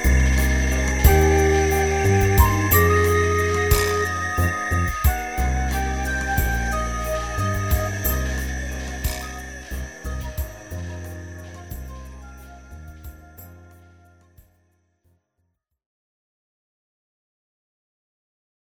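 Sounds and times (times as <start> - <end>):
flute playing: 0.0 - 14.4.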